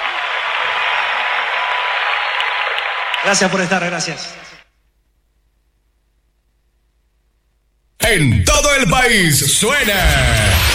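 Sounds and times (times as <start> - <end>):
audience applause: 0.0 - 4.6
speech: 3.2 - 4.6, 8.1 - 10.7.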